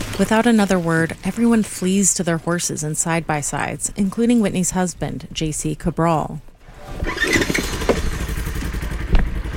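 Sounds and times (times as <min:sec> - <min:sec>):
speech: 0:00.2 - 0:07.6
firefighter crew chainsaws cutting down small trees: 0:07.0 - 0:09.4.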